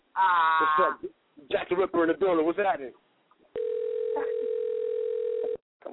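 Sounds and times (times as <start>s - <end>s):
speech: 0.2s - 3.0s
phone ringing: 3.6s - 5.6s.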